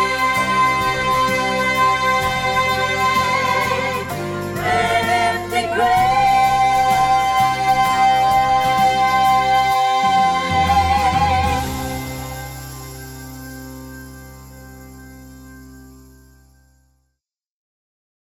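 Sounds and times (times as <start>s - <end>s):
soprano singing slowly: 0.0s - 13.4s.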